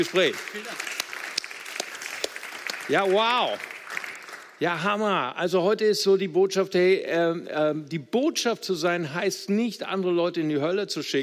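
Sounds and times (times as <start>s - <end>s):
speech: 0.0s - 0.9s, 2.9s - 3.7s, 4.6s - 11.2s
room full of people applauding: 0.0s - 4.8s.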